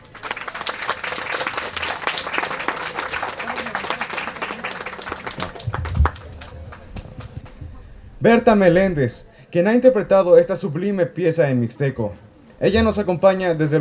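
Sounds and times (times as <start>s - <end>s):
loud audience applause: 0.0s - 7.7s
speech: 8.2s - 13.8s.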